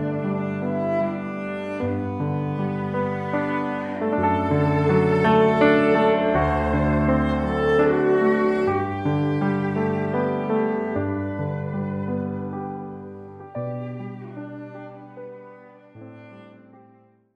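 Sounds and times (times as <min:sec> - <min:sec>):
cello in G: 0:00.0 - 0:17.3.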